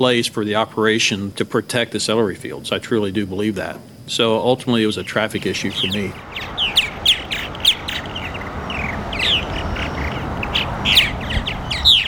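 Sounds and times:
speech: 0.0s - 6.8s
purple martins peeping at a birdhouse: 4.8s - 12.0s.

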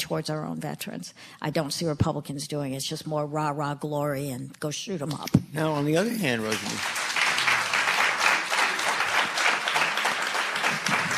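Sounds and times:
speech: 0.1s - 7.1s
audience applause: 6.2s - 11.1s.

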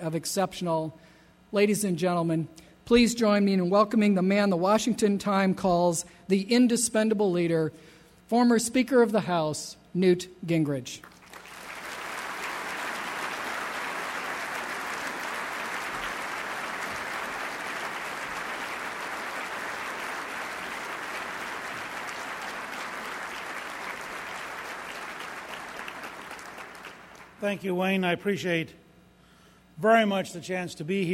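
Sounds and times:
speech: 0.0s - 11.1s, 27.4s - 28.8s, 29.8s - 31.1s
audience applause welcoming a former Speaker of the House: 11.1s - 27.4s.

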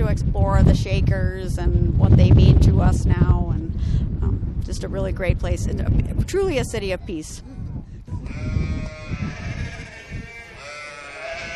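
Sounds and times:
low rumbling background: 0.0s - 10.6s
speech: 0.2s - 4.0s, 4.7s - 7.5s
baby goats bleating in a barn: 8.2s - 11.5s.

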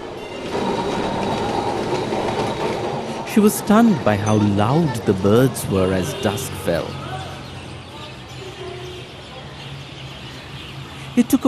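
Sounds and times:
tram trundling in Kolkata: 0.0s - 9.2s
speech: 3.4s - 7.1s, 11.2s - 11.4s.

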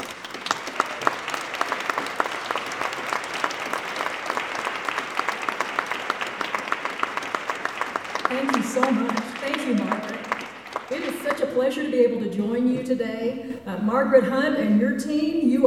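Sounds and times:
audience applause welcoming a speaker at an arts event in Colorado: 0.0s - 11.5s
speech: 8.8s - 10.3s, 11.6s - 15.6s.

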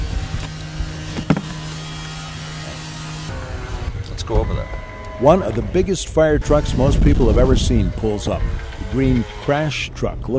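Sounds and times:
heavy machinery cutting apart an aircraft fuselage: 0.0s - 10.3s
dull knocks: 1.1s - 1.6s
speech: 4.3s - 10.3s.

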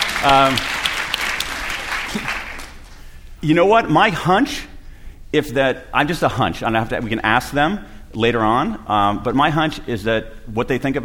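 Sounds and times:
audience clapping: 0.0s - 3.1s
speech: 0.2s - 0.8s, 2.1s - 2.4s, 3.4s - 4.7s, 5.3s - 11.0s.

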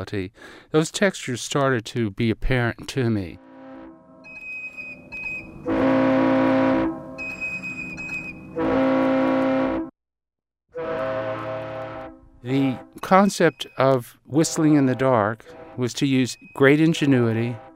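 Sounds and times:
speech: 0.0s - 3.4s, 12.5s - 17.7s
horns: 3.4s - 4.2s, 5.5s - 7.3s, 8.5s - 9.9s, 10.7s - 13.3s, 14.4s - 17.7s.

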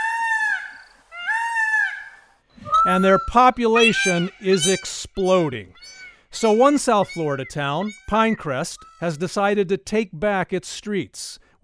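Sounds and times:
peacock call: 0.0s - 9.2s
speech: 2.8s - 11.6s.

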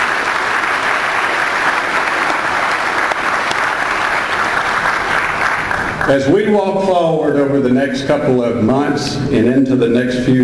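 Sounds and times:
audience applause: 0.0s - 6.3s
speech: 6.1s - 10.4s.

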